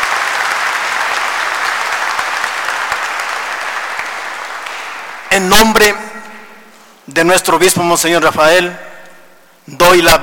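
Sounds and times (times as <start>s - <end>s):
crowd applause: 0.0s - 5.4s
speech: 5.3s - 6.1s, 7.1s - 8.9s, 9.7s - 10.2s.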